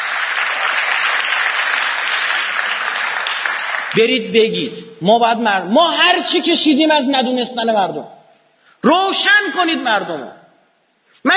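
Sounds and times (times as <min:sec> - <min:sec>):
audience applause at a meeting: 0:00.0 - 0:04.1
speech: 0:03.9 - 0:08.2, 0:08.8 - 0:10.4.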